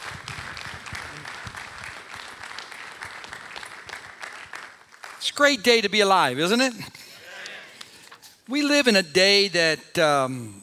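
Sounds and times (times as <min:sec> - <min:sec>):
church congregation applauding to welcome their pastor: 0:00.0 - 0:06.5
speech: 0:05.2 - 0:07.0, 0:08.5 - 0:10.6.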